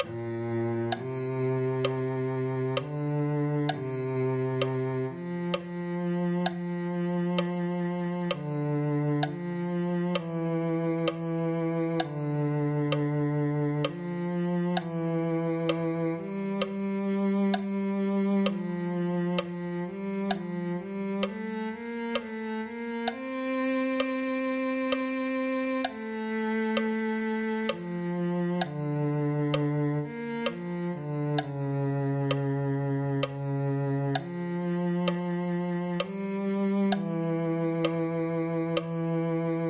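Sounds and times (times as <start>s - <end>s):
cello: 0.0s - 39.6s.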